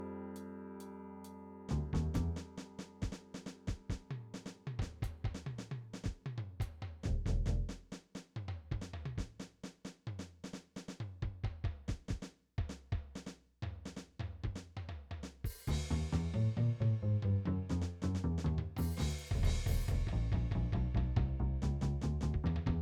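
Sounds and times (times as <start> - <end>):
drum break: 1.7 - 16.8, 17.7 - 22.7.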